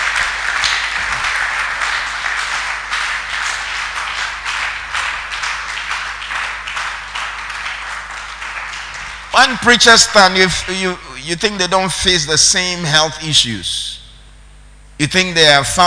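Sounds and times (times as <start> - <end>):
audience clapping: 0.0 - 10.9
speech: 9.4 - 13.9, 15.0 - 15.8.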